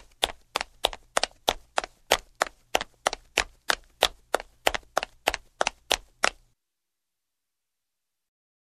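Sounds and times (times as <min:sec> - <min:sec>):
woman running: 0:00.0 - 0:06.4.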